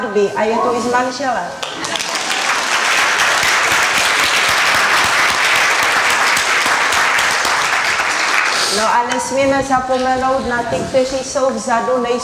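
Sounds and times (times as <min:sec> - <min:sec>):
speech: 0:00.1 - 0:01.9, 0:08.7 - 0:12.2
audience applause: 0:01.6 - 0:09.0.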